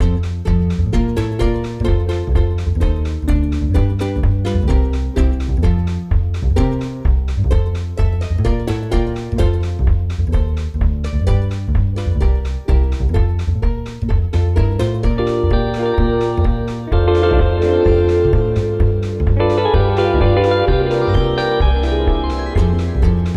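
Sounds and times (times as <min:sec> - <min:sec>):
gameplay music loop: 0:00.0 - 0:23.3.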